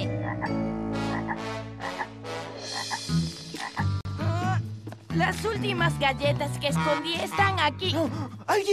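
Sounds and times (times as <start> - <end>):
frog croaking: 0.2 - 4.0
speech: 5.2 - 8.7.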